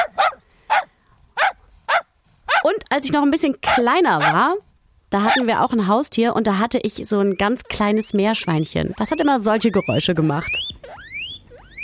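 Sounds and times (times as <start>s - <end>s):
neighbour's dog barking loudly: 0.0s - 2.8s, 3.6s - 4.6s, 5.2s - 5.5s
speech: 2.9s - 10.7s.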